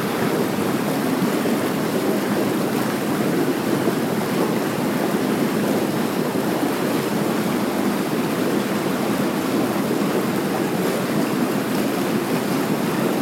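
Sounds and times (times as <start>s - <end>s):
hot tub: 0.0s - 13.2s.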